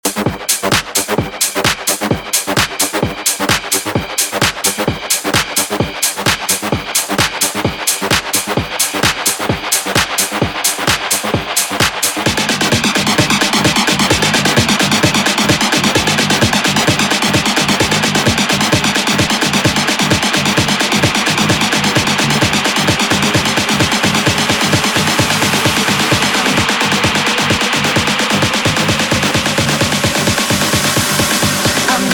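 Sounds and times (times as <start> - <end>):
extended house music intro: 0.0 - 32.1.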